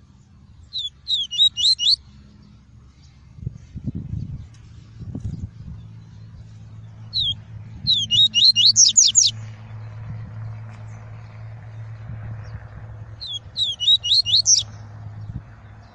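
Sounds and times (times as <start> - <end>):
faint rumbling noise: 0.0 - 15.9
Double-collared seedeater song: 0.7 - 2.0, 7.1 - 9.4, 13.2 - 14.7.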